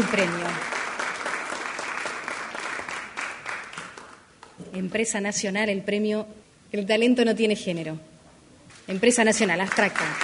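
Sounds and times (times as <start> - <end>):
speech: 0.0 - 0.7, 4.7 - 8.1, 8.9 - 10.2
audience applause: 0.0 - 4.2, 9.5 - 10.2.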